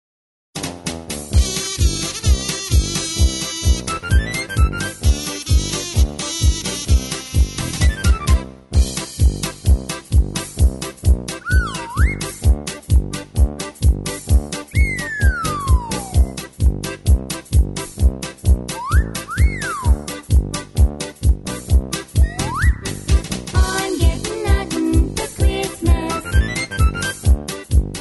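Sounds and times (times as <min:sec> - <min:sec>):
square dance music: 0:00.6 - 0:27.9
background vocals: 0:23.6 - 0:26.5.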